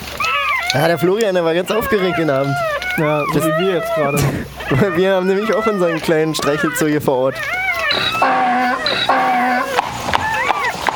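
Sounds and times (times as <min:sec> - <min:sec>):
donkey braying: 0:00.0 - 0:10.9
speech: 0:00.7 - 0:09.8.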